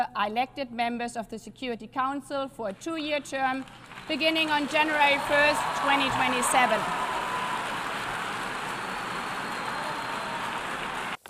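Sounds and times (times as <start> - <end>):
speech: 0.0 - 7.1
applause for new UN Security Council members: 2.9 - 11.2.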